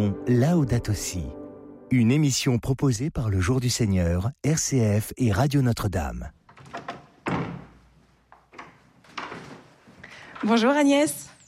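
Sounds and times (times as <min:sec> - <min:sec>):
speech: 0:00.0 - 0:06.4, 0:10.4 - 0:11.3
door closing: 0:06.4 - 0:10.8
handling knocks and clatters: 0:06.5 - 0:10.8.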